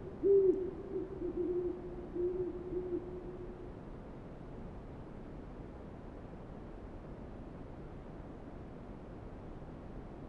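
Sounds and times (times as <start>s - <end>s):
owl low hoots: 0.0s - 3.2s.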